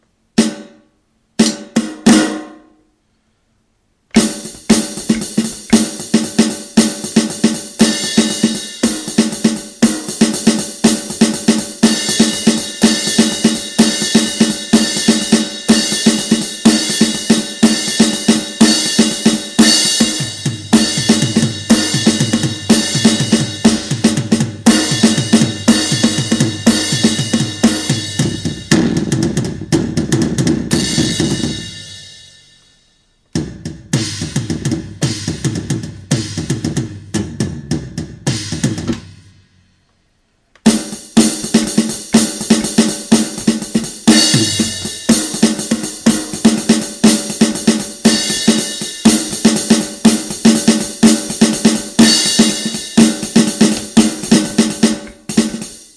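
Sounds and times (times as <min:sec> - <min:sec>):
drums: 0:00.0 - 0:00.8, 0:01.4 - 0:02.7, 0:04.1 - 0:32.6, 0:33.2 - 0:39.8, 0:40.6 - 0:55.9.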